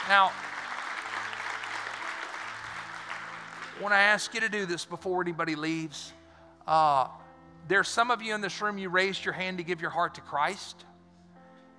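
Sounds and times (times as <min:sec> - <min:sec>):
church congregation applause during a service: 0:00.0 - 0:04.9
speech: 0:00.1 - 0:00.4, 0:03.8 - 0:10.9.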